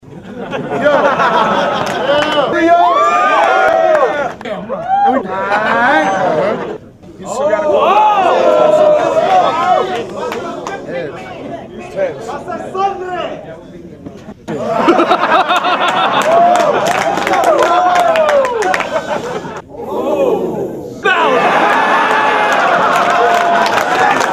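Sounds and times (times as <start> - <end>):
laughter: 0.0 - 2.7, 4.1 - 6.8, 14.2 - 19.7
crowd: 0.0 - 24.3.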